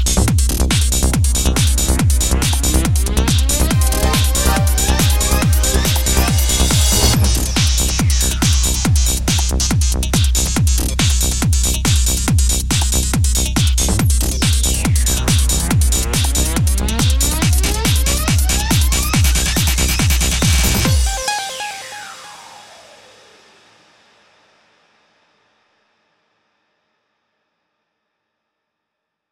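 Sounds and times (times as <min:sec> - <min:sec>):
trance music: 0:00.4 - 0:23.7.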